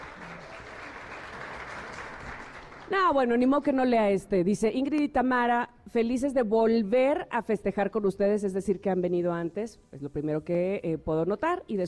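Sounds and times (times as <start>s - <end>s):
applause: 0.0s - 3.7s
speech: 2.9s - 11.8s.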